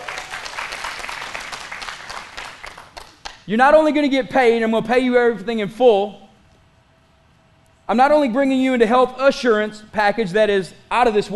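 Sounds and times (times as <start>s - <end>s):
audience clapping hands: 0.0s - 3.5s
speech: 3.5s - 6.2s, 7.9s - 11.3s.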